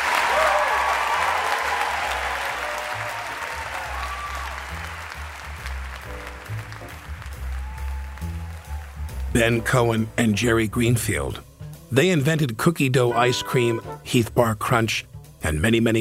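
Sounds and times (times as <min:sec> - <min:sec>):
audience applause: 0:00.0 - 0:09.4
speech: 0:09.4 - 0:16.0.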